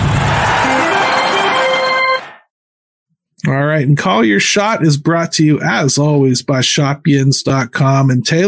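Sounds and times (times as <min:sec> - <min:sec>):
loud show theme music: 0:00.1 - 0:02.4
speech: 0:03.8 - 0:08.4.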